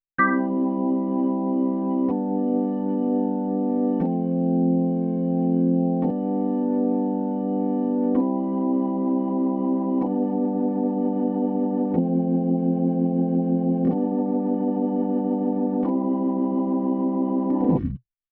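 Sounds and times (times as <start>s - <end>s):
rotary organ switching on and off: 0.2s - 17.8s.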